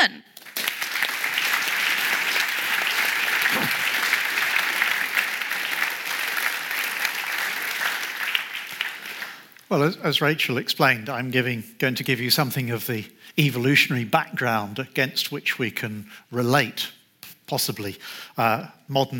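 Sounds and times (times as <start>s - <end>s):
speech: 0.0s - 0.3s, 9.7s - 19.1s
audience applause welcoming the first speaker of an evening lecture: 0.3s - 9.6s.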